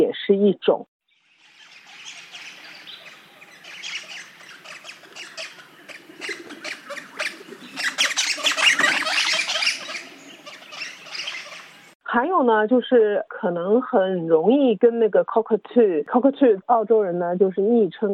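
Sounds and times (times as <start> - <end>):
speech: 0.0 - 0.9, 12.1 - 18.1
flock of Crimson Rosella parrots squawking and chattering: 1.4 - 12.0.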